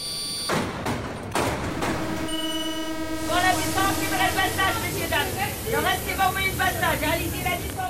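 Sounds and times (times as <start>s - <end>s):
Paris metro train rumbling and clattering: 1.0s - 7.8s
Paris metro electronic door-warning tone: 1.4s - 5.1s.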